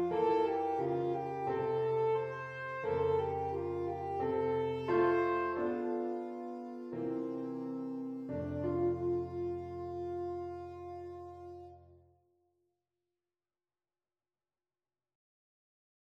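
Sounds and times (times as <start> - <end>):
piano: 0.0 - 12.0
alto saxophone: 0.0 - 12.1.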